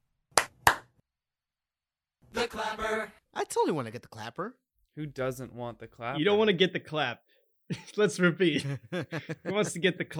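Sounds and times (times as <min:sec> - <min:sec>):
hand claps: 0:00.4 - 0:00.9
speech: 0:02.4 - 0:10.1.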